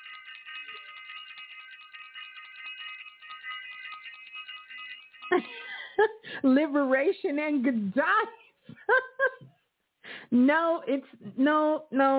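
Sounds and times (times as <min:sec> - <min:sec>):
bell ringing: 0:00.0 - 0:06.1
speech: 0:05.3 - 0:08.4, 0:10.3 - 0:12.1.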